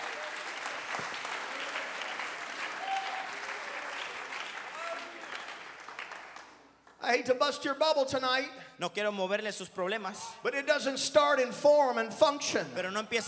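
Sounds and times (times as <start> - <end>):
audience clapping hands: 0.0 - 7.0
speech: 7.1 - 13.2.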